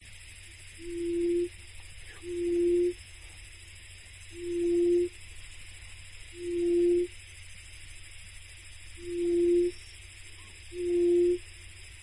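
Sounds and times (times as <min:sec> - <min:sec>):
faint background hum: 0:00.0 - 0:12.0
forest buttonquail booming hoots: 0:02.1 - 0:03.0, 0:04.4 - 0:05.1, 0:06.4 - 0:07.1, 0:09.0 - 0:09.8, 0:10.4 - 0:11.4.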